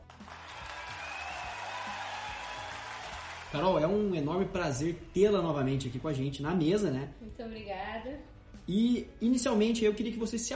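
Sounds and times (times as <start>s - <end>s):
applause for the guest: 0.0s - 3.8s
speech: 3.5s - 10.5s.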